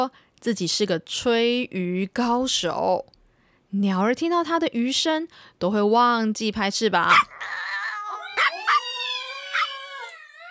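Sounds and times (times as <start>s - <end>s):
speech: 0.0s - 7.6s
dog howling and yipping: 7.1s - 10.5s.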